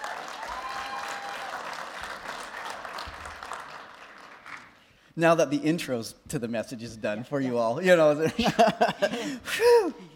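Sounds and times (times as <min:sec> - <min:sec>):
audience applause welcoming a speaker to the platform: 0:00.0 - 0:04.8
speech: 0:05.2 - 0:10.1
laughter: 0:08.2 - 0:10.1.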